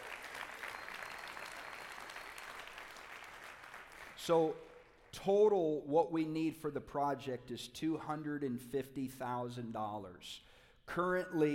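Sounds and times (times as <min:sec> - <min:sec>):
audience applause: 0:00.0 - 0:05.0
speech: 0:04.2 - 0:11.5.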